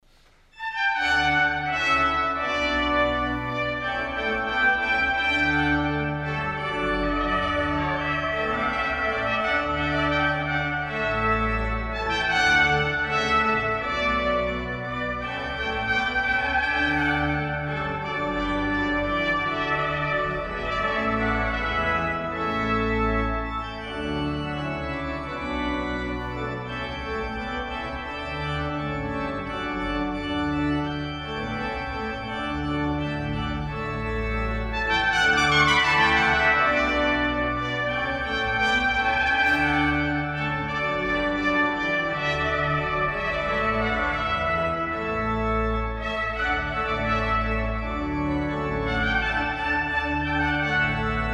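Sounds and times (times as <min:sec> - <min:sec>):
organ playing a bourree from a suite in D major: 0:00.6 - 0:51.3.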